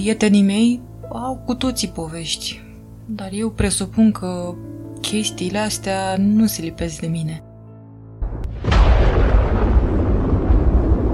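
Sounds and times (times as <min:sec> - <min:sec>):
speech: 0:00.0 - 0:07.4
thunder sound effect: 0:08.2 - 0:11.1.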